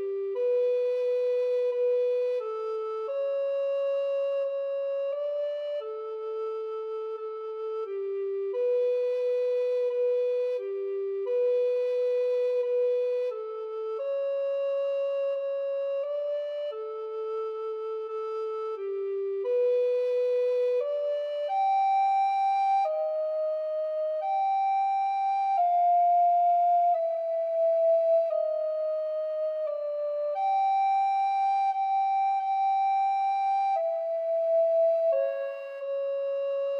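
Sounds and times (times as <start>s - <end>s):
alto recorder duet: 0.0s - 36.7s.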